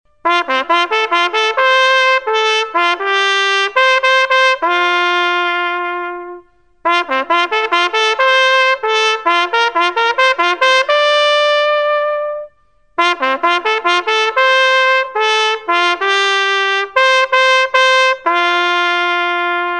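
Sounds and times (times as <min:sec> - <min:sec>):
trumpet call: 0:00.1 - 0:19.7.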